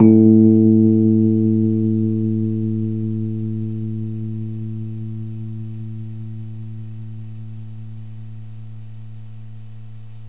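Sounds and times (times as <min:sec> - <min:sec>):
Rhodes electric piano: 0:00.0 - 0:03.9.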